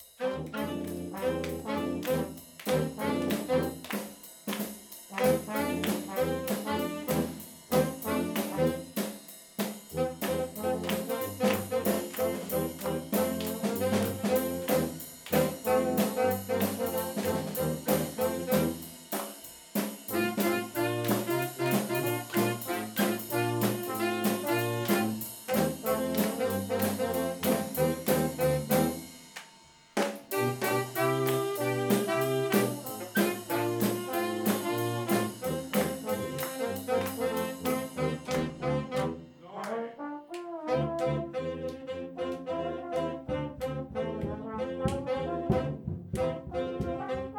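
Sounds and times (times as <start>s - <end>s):
swing music: 0.0s - 47.3s.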